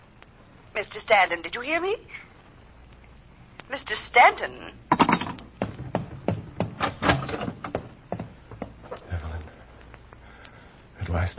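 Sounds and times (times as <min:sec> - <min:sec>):
speech: 0:00.8 - 0:02.3, 0:03.7 - 0:04.8
door opening with clunks and rattling knocks: 0:04.9 - 0:08.7.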